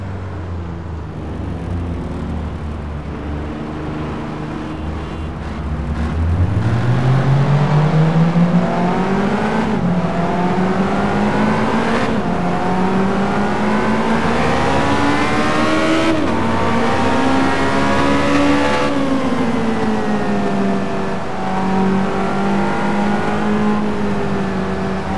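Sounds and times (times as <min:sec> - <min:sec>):
Ferrari 360 Challenge Stradale sports car: 0:00.0 - 0:25.1.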